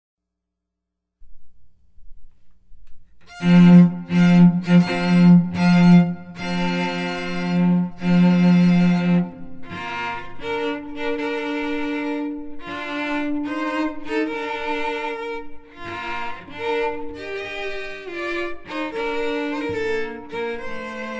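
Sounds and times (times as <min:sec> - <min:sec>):
strings: 0:03.0 - 0:21.1.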